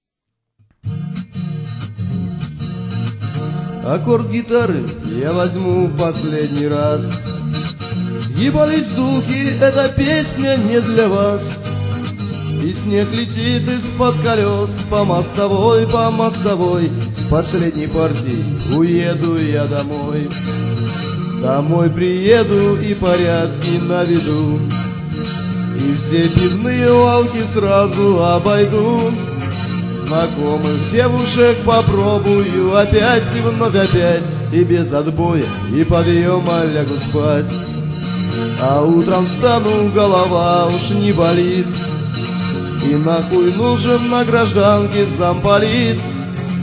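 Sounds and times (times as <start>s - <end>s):
guitar chord: 1.0s - 46.6s.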